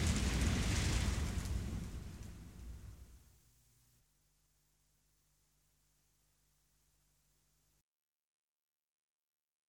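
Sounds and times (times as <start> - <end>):
rainstorm: 0.0 - 4.0.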